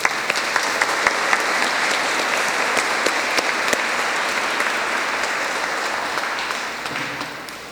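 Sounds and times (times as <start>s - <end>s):
audience applause: 0.0s - 7.7s
laughter: 0.0s - 7.7s.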